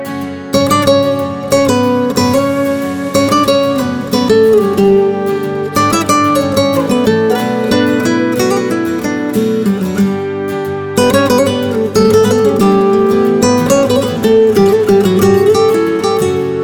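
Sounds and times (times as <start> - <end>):
ringtone: 0.0 - 16.6.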